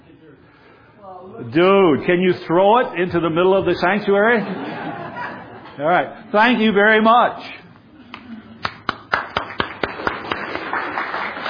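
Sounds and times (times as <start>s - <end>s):
speech: 1.0s - 4.9s, 5.8s - 7.6s
laughter: 4.2s - 6.3s
audience clapping for volunteers: 8.1s - 11.4s.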